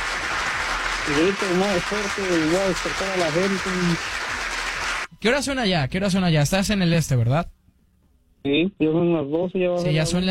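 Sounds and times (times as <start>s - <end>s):
applause: 0.0s - 5.1s
speech: 1.1s - 4.2s, 5.2s - 7.6s, 8.4s - 10.3s.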